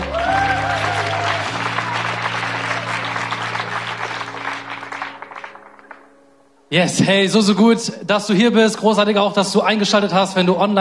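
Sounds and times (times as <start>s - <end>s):
audience applause for the band: 0.0s - 6.1s
speech: 6.7s - 10.7s.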